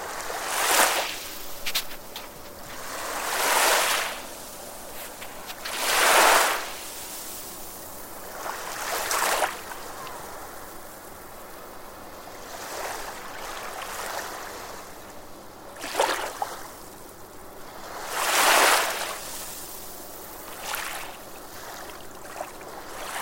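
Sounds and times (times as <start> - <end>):
summer beach ambience: 0.0 - 23.2.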